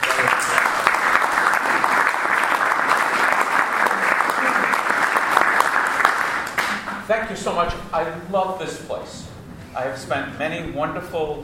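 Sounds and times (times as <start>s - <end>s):
audience applause welcoming a rabbi: 0.0s - 7.0s
speech: 7.1s - 11.4s.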